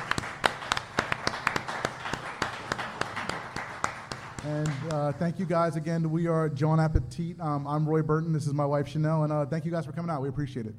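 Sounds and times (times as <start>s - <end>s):
audience round of applause: 0.0s - 5.2s
speech: 4.4s - 10.7s.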